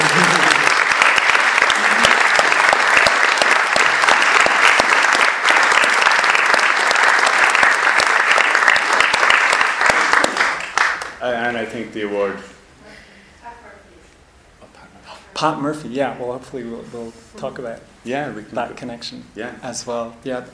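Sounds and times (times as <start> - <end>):
audience applause: 0.0 - 11.2
speech: 11.9 - 12.5, 15.4 - 20.5.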